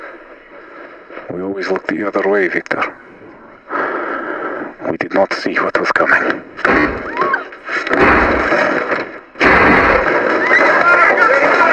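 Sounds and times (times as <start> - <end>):
speech: 1.4 - 3.0, 5.1 - 7.0
gunfire bursts in an audio drama: 7.8 - 11.7.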